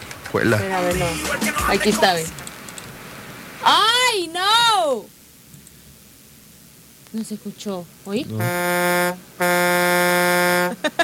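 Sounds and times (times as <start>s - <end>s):
speech: 0.3s - 2.4s, 3.6s - 5.2s, 7.1s - 9.5s
truck horn blasts: 8.4s - 10.8s.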